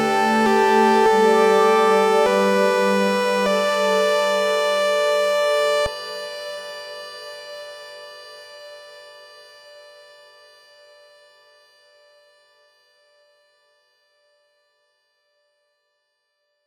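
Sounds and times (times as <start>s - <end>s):
abstract ambient music: 0.0s - 5.9s.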